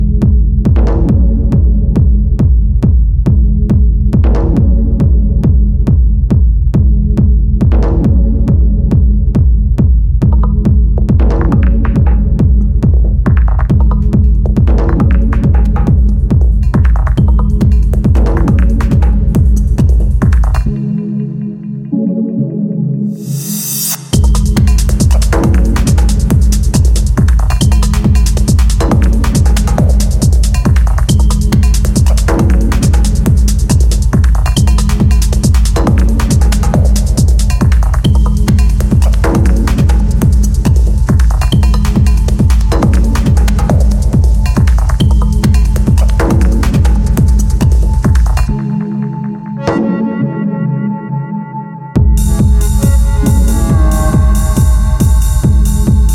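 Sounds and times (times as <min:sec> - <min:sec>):
techno music: 0:00.0 - 0:56.1.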